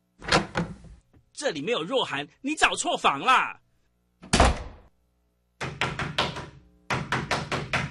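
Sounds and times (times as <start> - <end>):
speech: 1.4 - 3.6
knocking on a door: 5.6 - 7.9.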